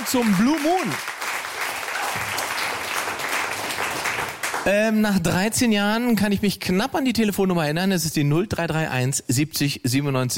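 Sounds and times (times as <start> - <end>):
studio audience applause: 0.0 - 5.2
speech: 0.1 - 1.2, 4.6 - 10.3.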